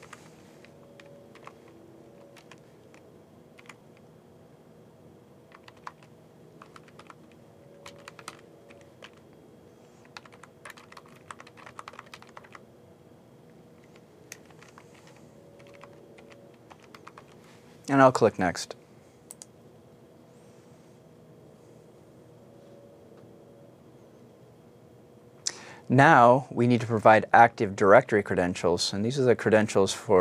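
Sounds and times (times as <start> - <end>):
typing login credentials on a computer keyboard: 0.0 - 3.0, 3.6 - 4.1, 5.5 - 9.2, 10.0 - 12.6, 13.8 - 17.4
speech: 17.9 - 18.8, 25.9 - 30.1.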